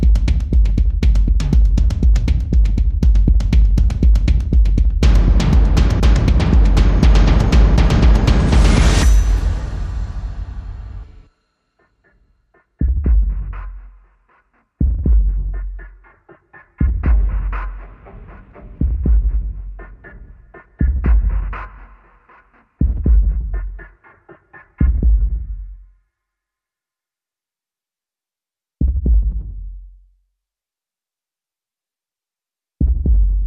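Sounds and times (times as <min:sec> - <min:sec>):
drums: 0:00.0 - 0:11.2, 0:12.6 - 0:25.8, 0:28.8 - 0:29.6, 0:32.8 - 0:33.4
sound effects: 0:05.0 - 0:11.3.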